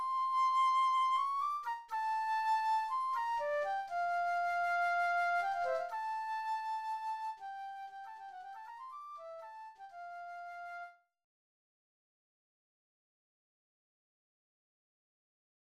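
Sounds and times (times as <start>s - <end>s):
flute: 0.0s - 11.1s.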